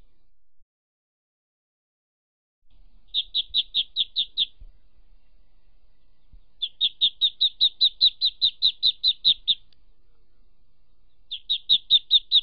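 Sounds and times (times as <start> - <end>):
ducklings peeping: 2.8 - 12.4.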